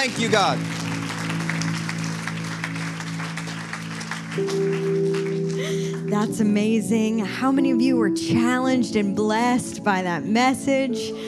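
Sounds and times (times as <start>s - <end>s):
speech: 0.0s - 0.9s, 4.4s - 5.0s, 6.1s - 11.2s
audience applause: 0.0s - 6.3s.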